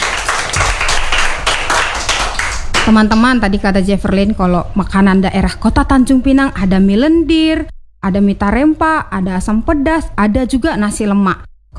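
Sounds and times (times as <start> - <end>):
audience clapping for a speaker after a presentation: 0.0 - 5.6
speech: 2.9 - 11.5.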